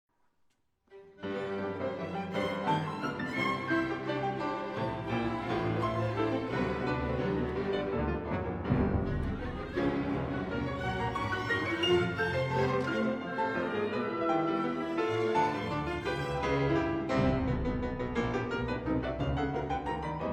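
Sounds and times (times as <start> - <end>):
piano concerto: 1.2 - 20.3.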